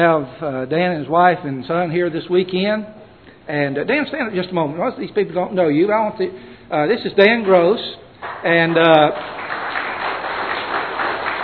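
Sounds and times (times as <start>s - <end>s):
speech: 0.0s - 9.4s
church congregation applauding a visiting missionary: 8.2s - 11.4s.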